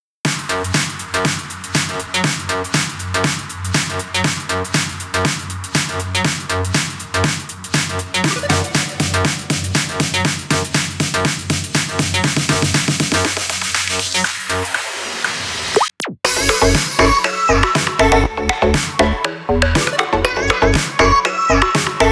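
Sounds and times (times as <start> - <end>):
electronic house techno music: 0.3 - 22.1.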